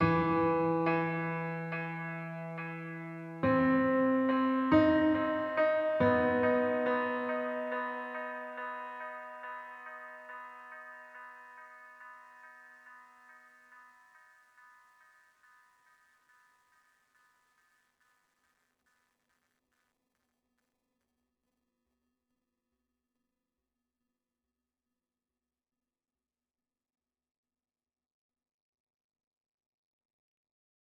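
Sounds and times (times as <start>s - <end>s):
piano one shot: 0.0s - 11.0s.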